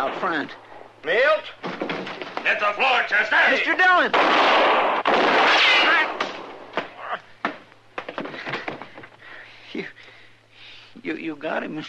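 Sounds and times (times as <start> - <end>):
speech: 0.0 - 6.1, 11.0 - 11.8
gunshots in a radio western drama gunfight: 4.2 - 6.5.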